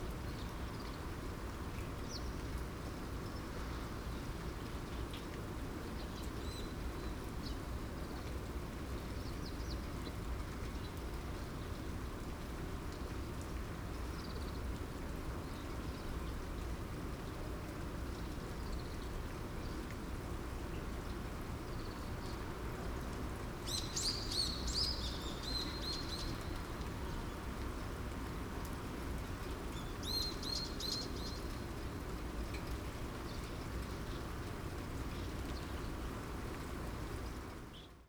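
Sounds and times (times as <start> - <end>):
light rain in a rice field in springtime: 0.0 - 38.0.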